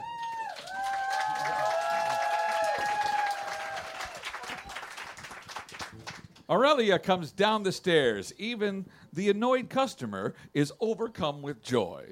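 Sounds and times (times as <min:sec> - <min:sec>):
whistles and cheers: 0:00.0 - 0:05.0
audience applause: 0:00.0 - 0:06.4
speech: 0:06.5 - 0:12.1.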